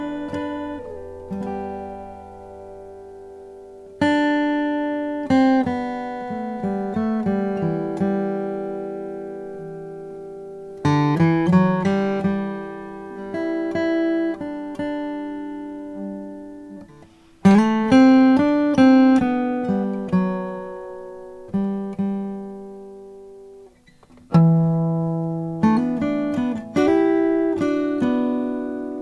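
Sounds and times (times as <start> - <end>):
Strahm Eros wild birdseye maple guitars: 0.0 - 29.0.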